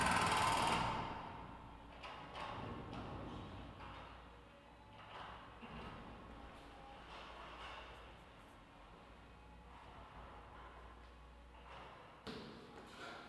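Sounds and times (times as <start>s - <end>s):
jackhammer: 0.0s - 1.4s.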